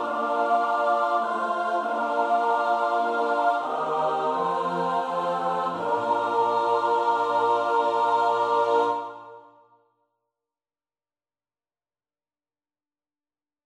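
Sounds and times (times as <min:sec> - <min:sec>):
soprano alto tenor bass voices: 0:00.0 - 0:09.4.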